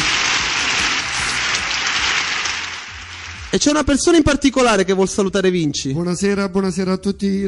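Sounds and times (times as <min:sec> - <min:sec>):
applause: 0:00.0 - 0:04.2
speech: 0:03.6 - 0:07.4.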